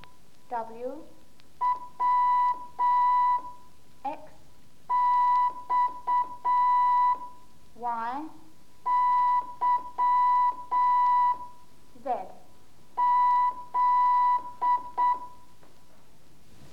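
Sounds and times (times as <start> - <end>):
speech: 0.5 - 1.2, 7.8 - 8.4
Morse code letter beeps: 1.6 - 3.6, 4.9 - 7.3, 8.9 - 11.5, 13.0 - 15.4.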